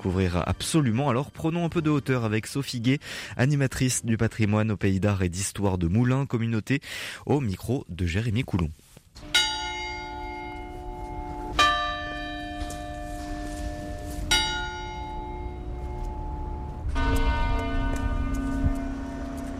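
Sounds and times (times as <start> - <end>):
speech: 0.0 - 9.4
Jacquemart clock bell of Moulins striking the hour: 9.2 - 19.5.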